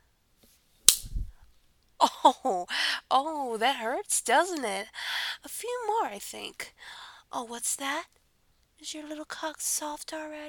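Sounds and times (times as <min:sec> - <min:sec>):
hand slap: 0:00.8 - 0:01.3
speech: 0:02.2 - 0:08.2, 0:08.8 - 0:10.4.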